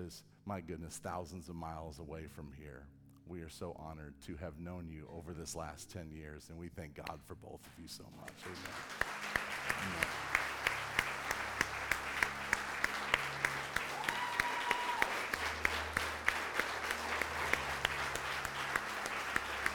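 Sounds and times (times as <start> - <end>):
speech: 0.0 - 9.2, 9.8 - 10.4
audience applause: 8.3 - 19.7.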